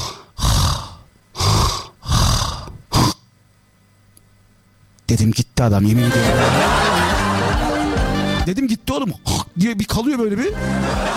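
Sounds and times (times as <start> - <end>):
voice imitating loud snoring: 0.0 - 3.3
speech: 5.1 - 6.8, 8.4 - 11.1
laughter: 6.0 - 8.6, 10.5 - 11.1.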